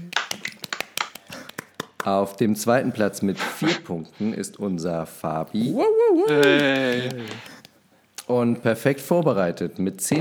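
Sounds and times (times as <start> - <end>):
brisk hand clapping: 0.0 - 2.1, 6.2 - 7.8
speech: 2.0 - 7.5, 8.3 - 10.1.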